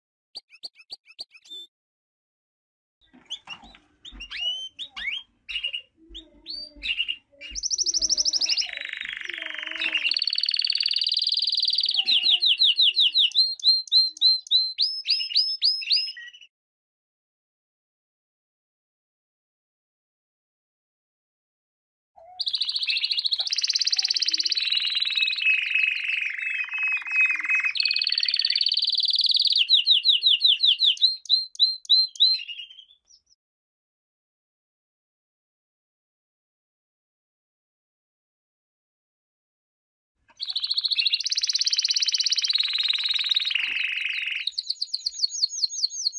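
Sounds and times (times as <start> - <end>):
canary singing: 0.4 - 1.7, 3.0 - 16.5, 22.2 - 33.4, 40.3 - 46.1.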